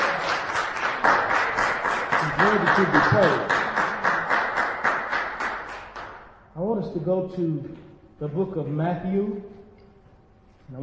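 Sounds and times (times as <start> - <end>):
audience hand clapping: 0.0 - 6.4
speech: 2.4 - 3.6, 6.7 - 9.5, 10.7 - 10.8.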